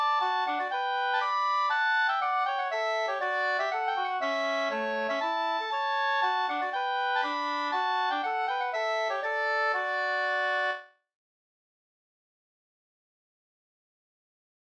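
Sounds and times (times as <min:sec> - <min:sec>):
polska dance tune: 0:00.0 - 0:10.8.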